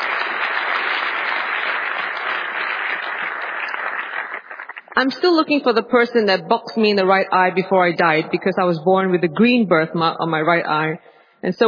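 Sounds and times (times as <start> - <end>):
audience applause: 0.0 - 5.0
speech: 5.0 - 11.6.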